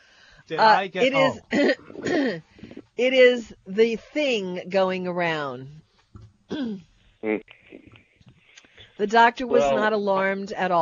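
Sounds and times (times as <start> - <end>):
speech: 0.5 - 5.8, 6.5 - 7.6, 9.0 - 10.7
person coughing and clearing throat: 1.2 - 2.4.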